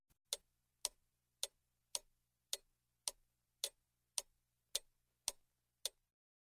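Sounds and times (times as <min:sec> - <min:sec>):
big clock ticking: 0:00.3 - 0:06.0.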